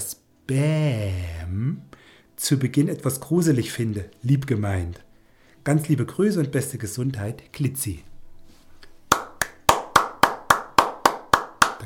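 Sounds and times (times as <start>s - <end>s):
speech: 0.5s - 8.1s
person clapping: 9.1s - 11.8s.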